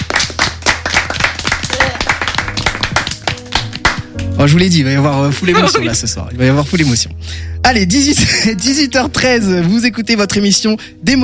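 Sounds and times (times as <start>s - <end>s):
audience applause: 0.0s - 4.0s
speech: 4.4s - 11.2s.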